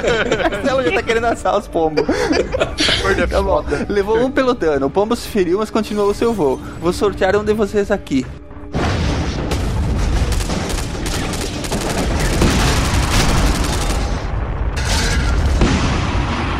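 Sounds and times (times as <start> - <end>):
laughter: 0.0 - 4.4
speech: 0.0 - 8.4
bomber crash explosion: 8.7 - 16.5
crackling debris: 8.8 - 16.5.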